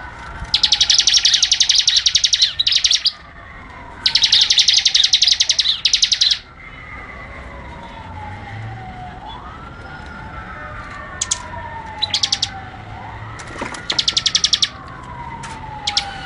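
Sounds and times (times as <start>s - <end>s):
bird song of rapid high-pitched chirping notes: 0.5s - 3.3s, 4.0s - 6.5s, 11.2s - 12.6s, 13.8s - 14.8s, 15.8s - 16.2s.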